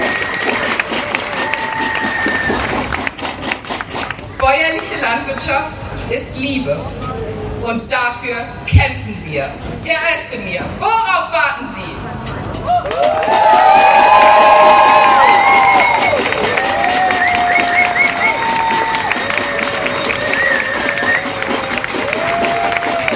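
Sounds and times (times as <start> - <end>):
crowd applause: 0.0 - 4.3, 12.8 - 23.1
speech: 4.5 - 7.0, 7.6 - 12.0.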